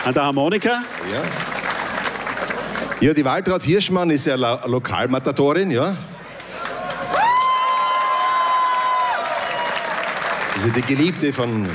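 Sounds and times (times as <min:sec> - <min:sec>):
speech: 0:00.0 - 0:01.6, 0:02.4 - 0:06.1, 0:10.6 - 0:11.7
crowd clapping: 0:00.0 - 0:03.7, 0:06.4 - 0:11.7.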